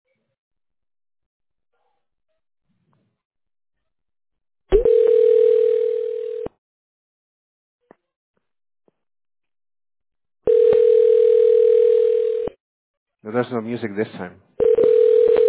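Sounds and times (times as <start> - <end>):
telephone ringback tone on a call: 4.8 - 6.5, 10.5 - 12.5, 14.6 - 15.4
speech: 13.5 - 14.4.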